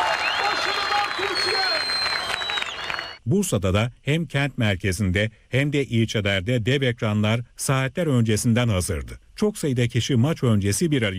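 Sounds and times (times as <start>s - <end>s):
crowd cheering and applauding at public screening: 0.0s - 3.2s
whistles: 0.1s - 3.2s
speech: 3.3s - 11.1s.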